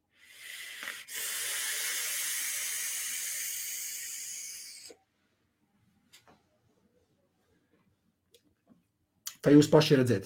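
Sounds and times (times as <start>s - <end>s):
vapor drawn in and blown out from a vape: 0.2s - 5.0s
speech: 9.4s - 10.2s.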